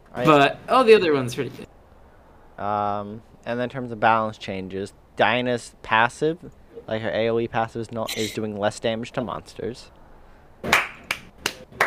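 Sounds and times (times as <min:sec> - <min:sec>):
speech: 0:00.2 - 0:01.7, 0:02.6 - 0:10.0
hand clapping: 0:10.6 - 0:11.8.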